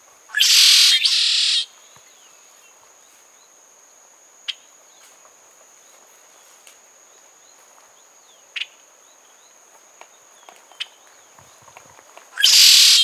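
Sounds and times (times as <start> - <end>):
Red-shouldered blackbird song at La Turba, Cuba: 0.4 - 2.7, 12.4 - 13.0.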